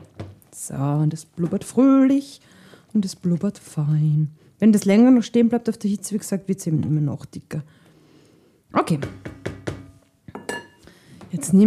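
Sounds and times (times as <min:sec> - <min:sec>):
speech: 0:00.6 - 0:07.8, 0:08.7 - 0:09.4, 0:11.4 - 0:11.6
plate or bowl clinking on counter: 0:09.5 - 0:10.8.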